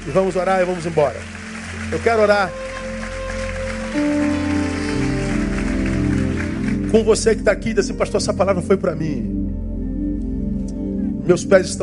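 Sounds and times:
speech: 0:00.0 - 0:02.6, 0:03.9 - 0:04.3, 0:06.9 - 0:09.3, 0:11.3 - 0:11.8
audience applauding: 0:00.0 - 0:07.6
sustained keyboard chords: 0:00.0 - 0:11.8.

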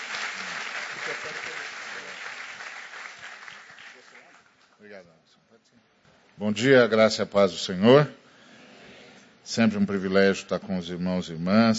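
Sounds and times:
audience applauding: 0:00.0 - 0:04.8
speech: 0:01.1 - 0:02.4, 0:04.8 - 0:08.2, 0:09.5 - 0:11.7.

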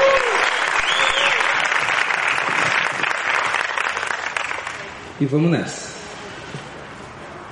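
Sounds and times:
crowd applauding: 0:00.0 - 0:05.0
faint whistles: 0:00.4 - 0:01.4
speech: 0:05.2 - 0:05.9.

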